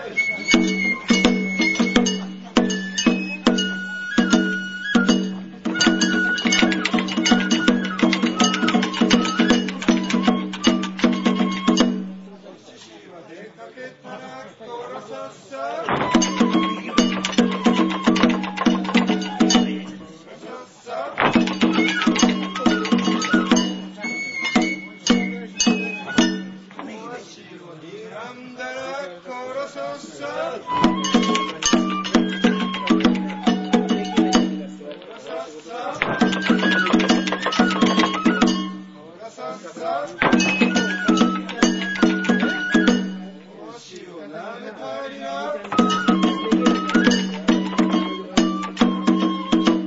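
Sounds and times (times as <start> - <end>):
banjo: 0.2 - 12.5, 15.9 - 20.2, 21.2 - 27.0, 30.7 - 35.1, 36.0 - 38.8, 40.1 - 43.5, 45.6 - 49.8.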